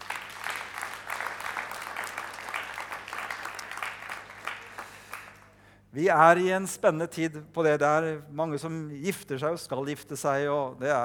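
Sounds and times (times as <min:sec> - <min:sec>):
applause: 0:00.0 - 0:05.6
speech: 0:06.0 - 0:11.0.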